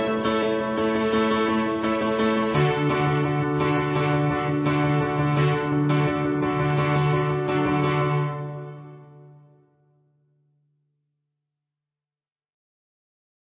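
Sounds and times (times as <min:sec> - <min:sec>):
piano strings: 0:00.0 - 0:09.5.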